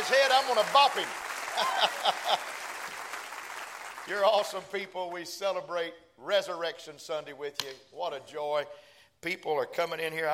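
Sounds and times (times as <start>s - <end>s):
audience applause: 0.0s - 4.6s
speech: 0.1s - 2.6s, 4.0s - 10.3s
laughter: 1.5s - 2.6s.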